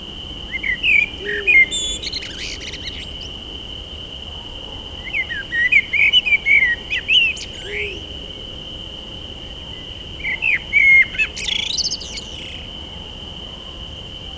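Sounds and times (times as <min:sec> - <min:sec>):
blackbird singing at night: 0:00.5 - 0:03.3, 0:05.1 - 0:08.0, 0:10.2 - 0:12.6.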